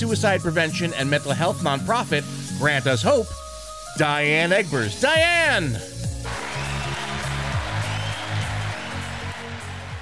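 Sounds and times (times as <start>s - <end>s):
speech: 0.0s - 6.0s
small group cheering and clapping: 6.2s - 10.0s.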